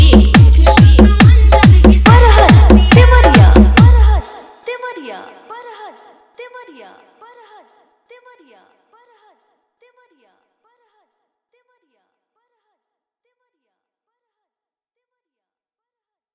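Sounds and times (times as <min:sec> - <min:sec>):
hard vibration bass music mix: 0:00.0 - 0:04.2.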